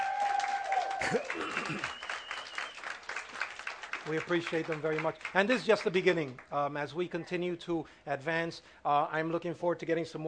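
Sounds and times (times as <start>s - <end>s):
audience clapping in appreciation: 0.0s - 6.6s
speech: 1.0s - 2.0s, 4.0s - 10.2s.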